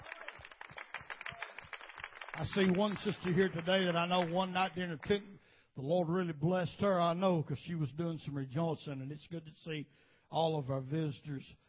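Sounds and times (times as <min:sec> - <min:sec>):
audience clapping hands: 0:00.0 - 0:05.3
speech: 0:02.4 - 0:11.6.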